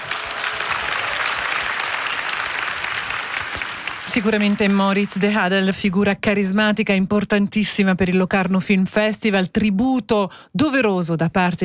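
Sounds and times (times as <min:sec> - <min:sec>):
audience applause: 0:00.0 - 0:05.5
speech: 0:04.2 - 0:11.6.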